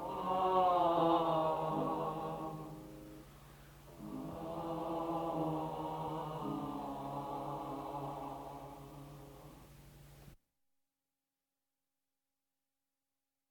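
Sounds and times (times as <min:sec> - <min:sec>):
people singing a chanson: 0:00.0 - 0:03.2, 0:04.0 - 0:09.6.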